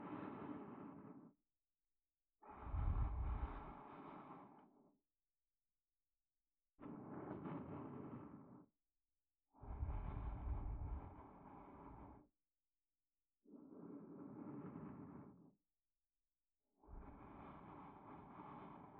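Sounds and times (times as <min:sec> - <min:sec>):
sleep aid loop in left channel: 0:00.0 - 0:01.4, 0:02.4 - 0:05.0, 0:06.8 - 0:08.7, 0:09.5 - 0:12.4, 0:13.4 - 0:15.5, 0:16.7 - 0:18.9.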